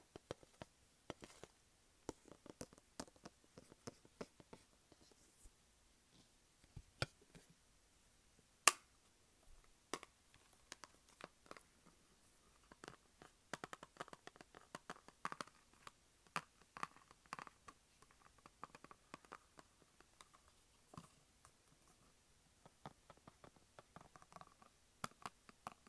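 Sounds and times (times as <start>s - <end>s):
tapping and scratching on a makeup palette: 0.0s - 5.2s, 9.9s - 22.0s, 22.6s - 25.8s.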